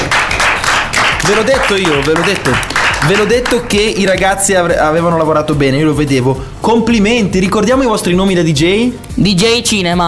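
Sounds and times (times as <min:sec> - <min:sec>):
applause, hands clapping: 0:00.0 - 0:04.6
speech: 0:01.3 - 0:10.0.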